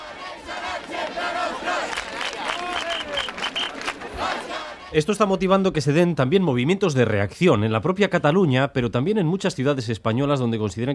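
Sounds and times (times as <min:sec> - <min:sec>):
large protest crowd chanting and shouting in the street: 0:00.0 - 0:05.7
whistles: 0:02.4 - 0:03.9
speech: 0:04.9 - 0:10.9.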